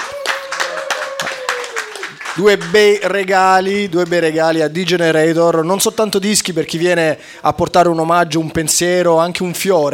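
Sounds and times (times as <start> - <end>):
live audience applause: 0.0 - 3.0
speech: 2.4 - 9.9.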